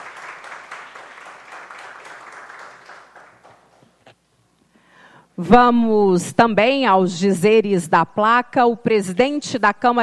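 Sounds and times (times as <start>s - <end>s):
applause: 0.0s - 3.8s
speech: 5.4s - 10.0s.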